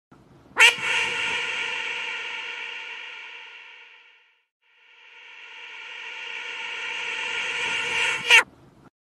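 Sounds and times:
duck quack with reverb reversed: 0:00.6 - 0:04.4, 0:05.8 - 0:08.4.

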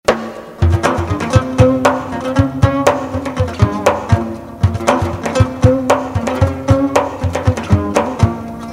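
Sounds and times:
lute playing: 0:00.6 - 0:08.7.

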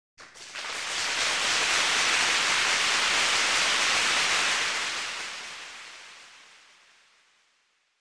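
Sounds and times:
loud applause: 0:00.2 - 0:07.1.

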